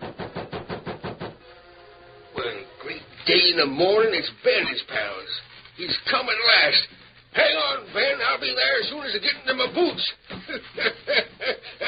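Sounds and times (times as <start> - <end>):
sharp rapping on a door: 0.0 - 1.4
speech: 3.2 - 11.8
laughter: 10.3 - 11.8.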